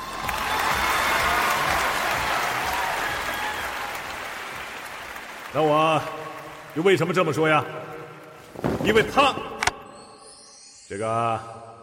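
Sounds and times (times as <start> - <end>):
audience applause: 0.0 - 8.4
speech: 5.5 - 6.2, 6.8 - 7.9, 8.6 - 9.5, 10.9 - 11.5.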